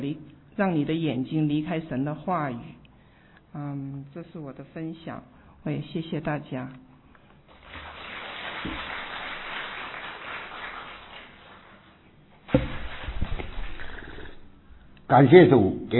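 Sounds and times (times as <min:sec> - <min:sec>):
speech: 0:00.0 - 0:02.8, 0:03.5 - 0:06.9, 0:15.1 - 0:15.9
warm audience applause: 0:07.8 - 0:11.8.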